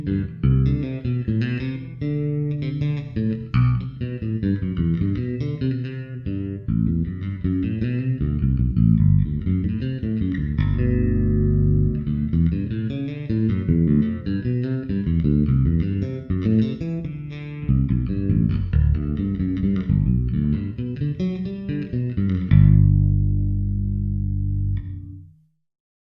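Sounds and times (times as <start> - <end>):
processed bass: 0.0 - 25.4.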